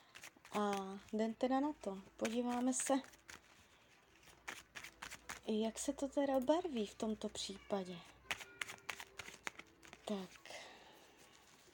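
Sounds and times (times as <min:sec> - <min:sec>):
shuffling playing cards: 0:00.0 - 0:01.2, 0:01.9 - 0:05.5, 0:08.3 - 0:10.5
speech: 0:00.5 - 0:03.2, 0:05.5 - 0:08.1, 0:10.1 - 0:10.4.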